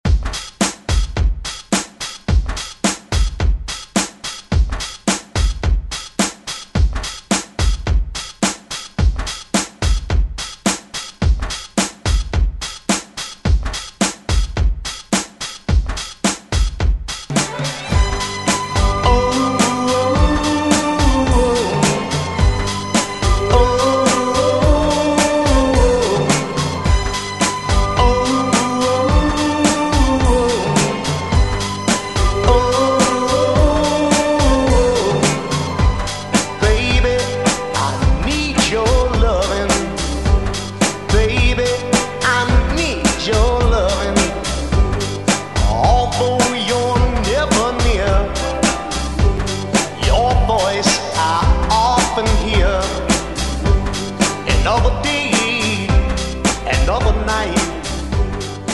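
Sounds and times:
drum loop: 0:00.0 - 0:58.7.

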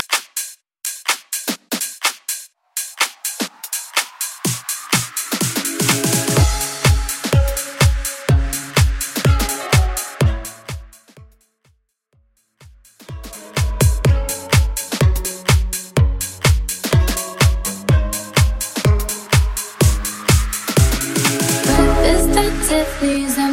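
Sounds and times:
house remix at 125 BPM: 0:02.8 - 0:11.1, 0:13.0 - 0:23.5.

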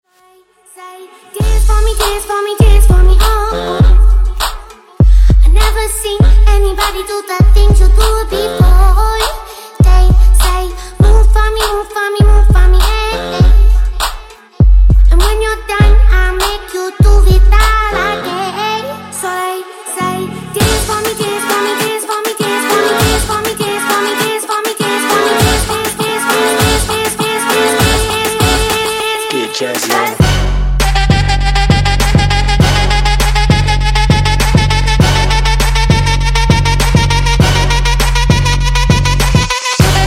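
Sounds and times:
moombah twerk music at 100 BPM: 0:01.3 - 0:40.0.

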